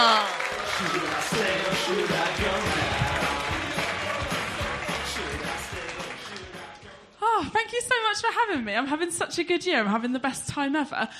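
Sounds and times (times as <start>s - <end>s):
speech: 0.0s - 2.2s, 7.7s - 11.1s
audience clapping: 0.0s - 6.9s.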